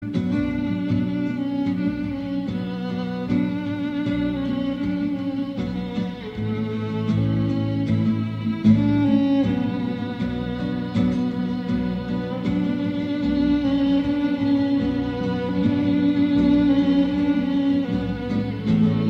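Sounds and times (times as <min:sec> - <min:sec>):
violin: 0:00.0 - 0:19.0.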